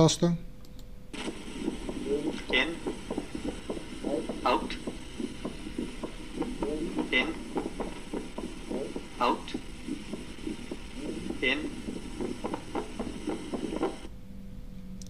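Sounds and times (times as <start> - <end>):
speech: 0.0 - 0.5
split second heart sound in auscultation recording: 1.2 - 14.1.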